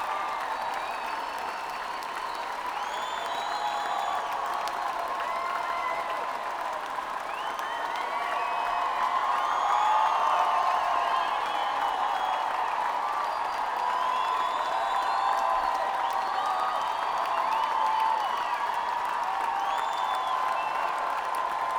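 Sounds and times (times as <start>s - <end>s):
applause: 0.0s - 21.7s.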